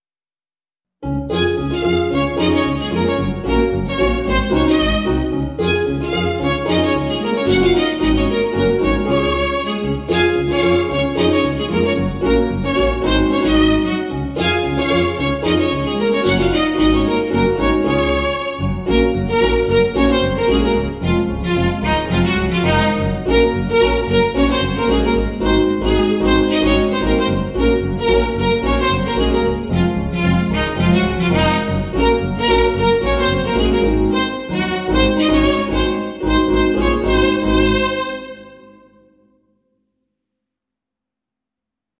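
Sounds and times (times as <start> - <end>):
violin: 1.2 - 39.0.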